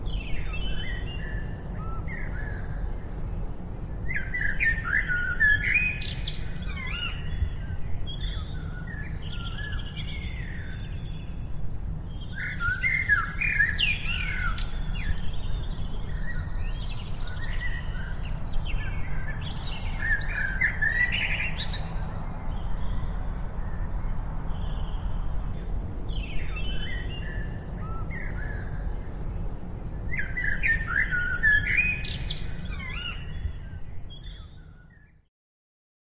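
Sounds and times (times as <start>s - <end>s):
birds chirping: 0.0s - 35.3s.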